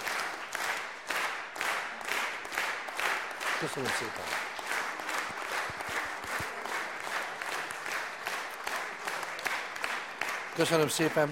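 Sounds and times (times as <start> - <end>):
audience applause: 0.0 - 11.3
speech: 3.6 - 4.6, 10.6 - 11.3.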